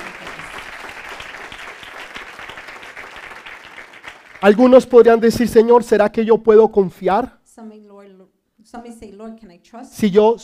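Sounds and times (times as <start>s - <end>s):
audience applauding: 0.0s - 4.8s
speech: 4.4s - 7.4s, 8.7s - 10.4s.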